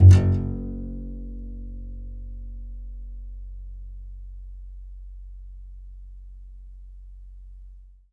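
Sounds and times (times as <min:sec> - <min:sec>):
contrabass balalaika plucked strings: 0:00.0 - 0:03.5.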